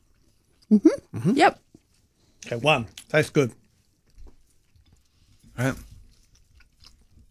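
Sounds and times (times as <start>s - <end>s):
speech: 0.7s - 1.6s, 2.5s - 3.6s, 5.6s - 5.9s
person chewing toast during a tasting: 4.3s - 7.3s.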